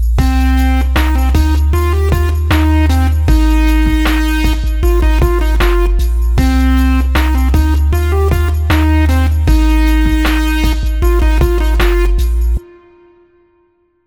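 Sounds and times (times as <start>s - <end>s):
simple melody in C minor: 0.2s - 14.0s.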